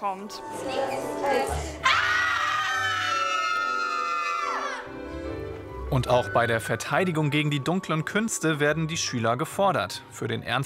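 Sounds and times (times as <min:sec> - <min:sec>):
speech: 0:00.0 - 0:02.1, 0:05.9 - 0:10.6
people screaming into a potion: 0:01.8 - 0:04.9.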